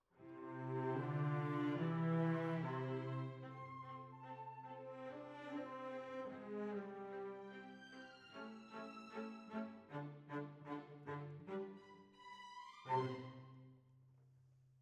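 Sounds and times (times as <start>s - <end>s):
cellos playing: 0.4s - 12.2s.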